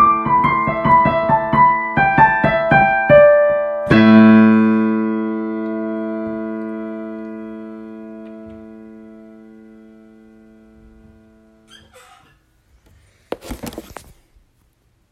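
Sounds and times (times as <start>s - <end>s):
home-recorded instrumental music: 0.0s - 11.7s.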